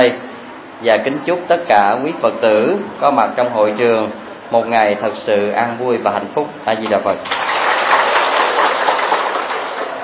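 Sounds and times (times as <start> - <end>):
speech: 0.0 - 0.2, 0.8 - 7.5
audience applauding: 7.3 - 10.0.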